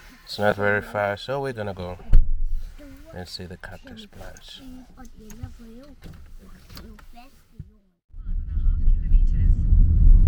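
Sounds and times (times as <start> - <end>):
car driving, road-and-engine rumble: 0.0 - 10.2
speech: 0.3 - 2.1, 3.1 - 7.3.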